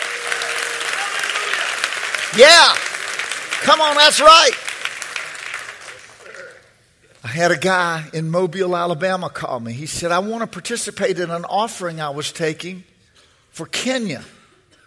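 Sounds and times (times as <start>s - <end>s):
audience clapping hands: 0.0s - 6.8s
speech: 2.3s - 2.9s, 3.6s - 4.6s, 7.2s - 12.9s, 13.5s - 14.4s.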